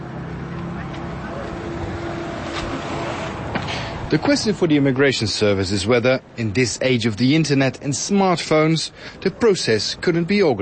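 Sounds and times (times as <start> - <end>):
faint crowd murmur: 0.0 - 4.6
bus arriving with diesel engine rumbling: 0.0 - 10.6
speech: 4.1 - 10.6.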